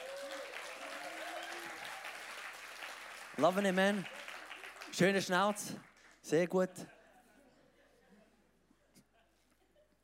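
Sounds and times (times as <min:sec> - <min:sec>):
audience applause: 0:00.0 - 0:06.2
speech: 0:03.4 - 0:04.2, 0:05.0 - 0:07.0.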